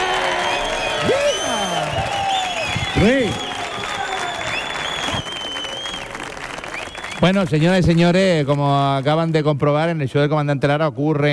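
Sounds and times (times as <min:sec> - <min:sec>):
person whooping: 0:00.0 - 0:05.3
live audience clapping in an auditorium at a stage show: 0:00.0 - 0:09.5
speech: 0:03.0 - 0:03.4, 0:07.2 - 0:11.3.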